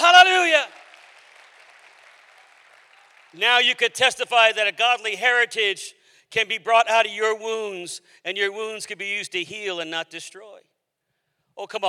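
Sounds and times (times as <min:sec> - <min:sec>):
audience clapping hands: 0:00.0 - 0:04.3
speech: 0:03.3 - 0:10.7, 0:11.6 - 0:11.8.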